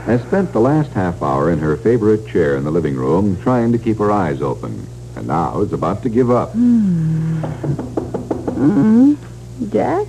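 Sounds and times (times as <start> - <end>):
speech: 0.0 - 7.8, 8.6 - 10.0
low steady hum: 0.0 - 10.0
knocking at the front door: 7.4 - 8.8
person calling out: 8.6 - 9.2.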